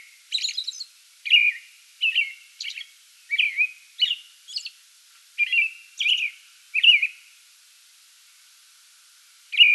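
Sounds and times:
American robin song: 0:00.0 - 0:04.8, 0:05.4 - 0:07.2, 0:09.5 - 0:09.7.

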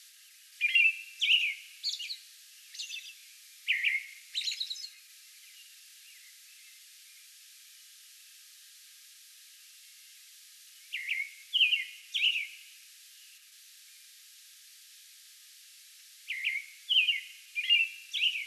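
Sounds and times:
American robin song: 0:00.6 - 0:05.0, 0:10.9 - 0:12.6, 0:16.3 - 0:18.4.

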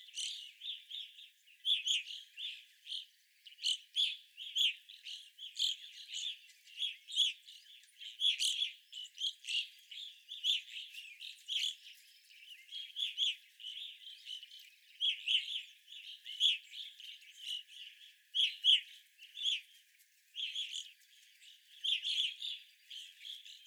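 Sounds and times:
evening grosbeaks chirping: 0:00.0 - 0:19.8, 0:20.4 - 0:23.6.

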